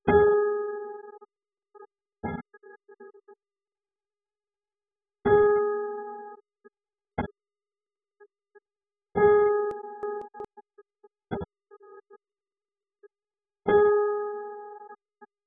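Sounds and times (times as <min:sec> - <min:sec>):
single-layer piano: 0:00.1 - 0:01.2, 0:05.3 - 0:06.4, 0:09.2 - 0:10.6, 0:13.7 - 0:15.0.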